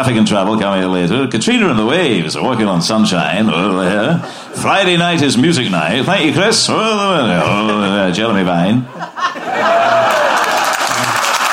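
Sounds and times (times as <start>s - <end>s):
speech: 0.0s - 10.3s
laughter: 3.3s - 11.5s
polite audience applause: 9.5s - 11.5s.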